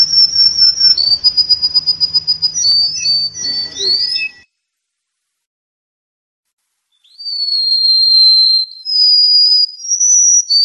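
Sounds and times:
canary-like warbling roll song: 0:00.0 - 0:04.4.

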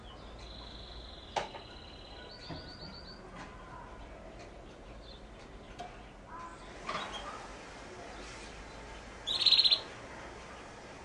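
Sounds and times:
canary song: 0:00.0 - 0:11.0.

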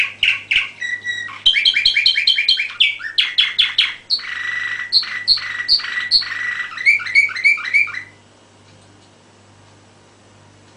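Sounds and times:
canary song: 0:00.0 - 0:08.3.

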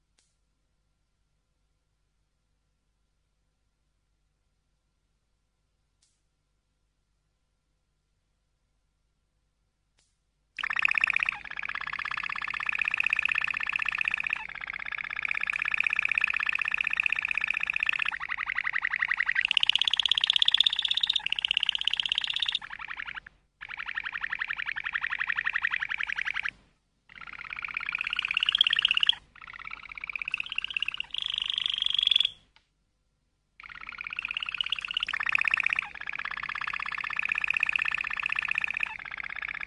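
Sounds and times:
canary trilling: 0:10.6 - 0:32.4, 0:33.6 - 0:39.6.

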